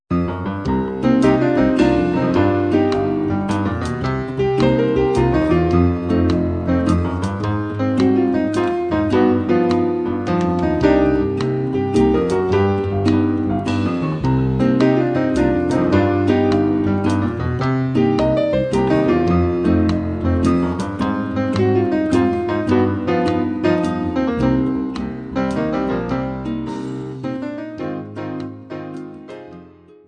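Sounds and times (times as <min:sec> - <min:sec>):
blues music: 0:00.1 - 0:30.0.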